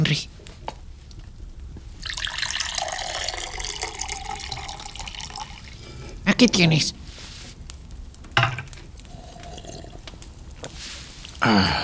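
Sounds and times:
speech: 0.0s - 0.4s, 6.4s - 7.0s
water being poured: 1.9s - 6.1s, 9.1s - 10.1s.

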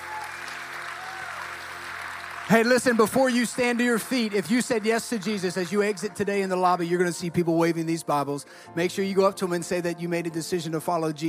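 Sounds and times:
audience clapping: 0.0s - 6.7s
speech: 2.5s - 11.2s.

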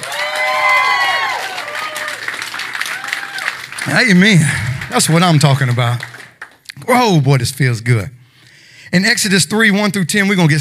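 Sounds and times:
audience cheers and whoops: 0.0s - 3.7s
audience clapping: 0.0s - 7.1s
speech: 3.9s - 6.2s, 6.9s - 8.2s, 8.9s - 10.5s.

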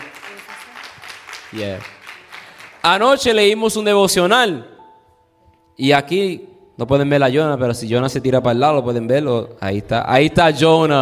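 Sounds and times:
scattered applause from a small group: 0.0s - 3.3s
speech: 1.5s - 2.0s, 2.8s - 4.7s, 5.8s - 11.0s.

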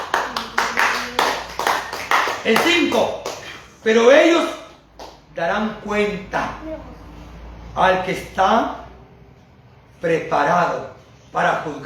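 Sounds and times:
audience clapping hands: 0.0s - 3.6s
speech: 2.4s - 4.6s, 5.4s - 7.0s, 7.8s - 8.8s, 10.0s - 11.8s.

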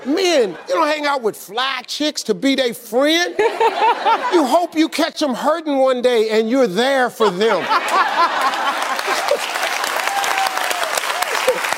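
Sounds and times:
laughter: 0.0s - 1.5s, 3.2s - 4.9s, 7.2s - 10.1s
speech: 0.0s - 9.6s
men in the audience clapping: 8.4s - 11.7s.

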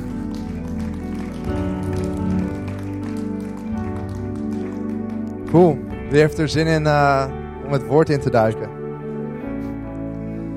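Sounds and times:
audience clapping: 0.0s - 6.9s
sustained keyboard or organ chords: 0.0s - 10.5s
speech: 5.5s - 8.8s.

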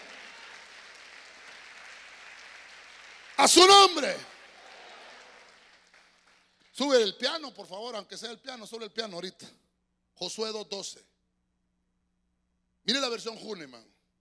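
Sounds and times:
audience clapping hands: 0.0s - 7.1s
speech: 3.4s - 4.3s, 6.8s - 9.6s, 10.2s - 11.1s, 12.9s - 13.9s.

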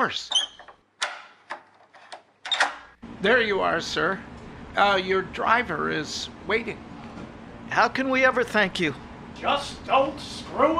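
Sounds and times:
speech: 0.0s - 0.4s, 3.2s - 6.9s, 7.7s - 10.7s
door being unlocked: 0.3s - 2.9s.

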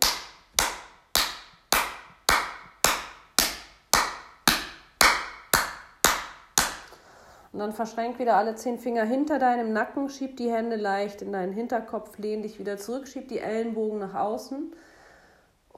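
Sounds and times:
loud hand clap after rubbing palms: 0.0s - 6.9s
speech: 7.6s - 14.9s.

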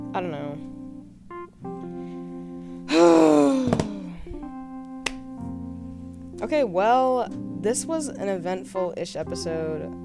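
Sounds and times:
speech: 0.1s - 0.8s, 6.4s - 10.0s
loud drawn-out vocal groan: 2.9s - 4.3s.

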